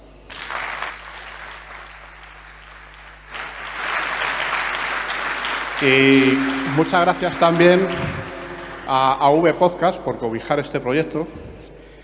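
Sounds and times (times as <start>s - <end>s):
audience applause: 0.3s - 9.4s
speech: 5.8s - 8.1s, 8.9s - 11.4s.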